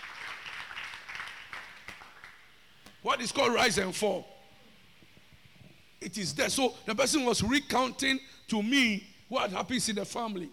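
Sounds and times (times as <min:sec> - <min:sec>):
church congregation clapping in worship: 0:00.0 - 0:02.5
speech: 0:03.0 - 0:04.3, 0:06.0 - 0:10.5.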